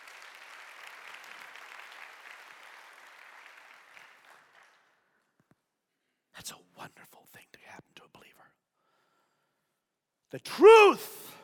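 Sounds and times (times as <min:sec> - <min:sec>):
audience clapping: 0:00.0 - 0:05.4
speech: 0:06.4 - 0:08.4, 0:10.3 - 0:11.2.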